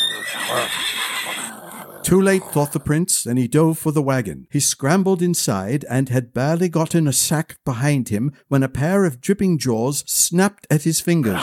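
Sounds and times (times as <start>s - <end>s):
horse screaming: 0.0s - 2.9s, 11.2s - 11.4s
speech: 0.5s - 1.4s, 2.1s - 11.4s.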